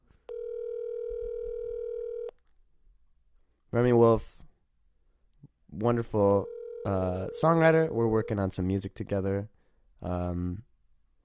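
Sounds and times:
electronic ring tone while placing a phone call: 0.3s - 2.3s, 6.4s - 8.6s
speech: 3.7s - 4.4s, 5.8s - 10.7s.

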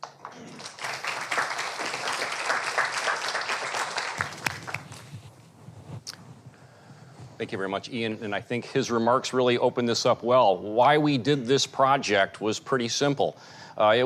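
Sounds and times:
audience applause welcoming a speaker: 0.0s - 5.1s
speech: 7.4s - 14.0s.

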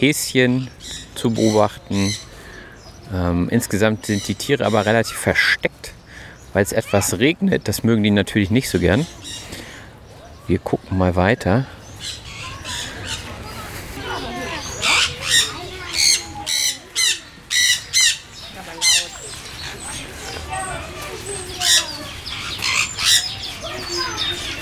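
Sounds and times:
speech: 0.0s - 2.3s, 3.1s - 9.6s, 10.5s - 12.2s
murmur: 0.0s - 24.6s
sun conure squawking: 14.1s - 24.6s.

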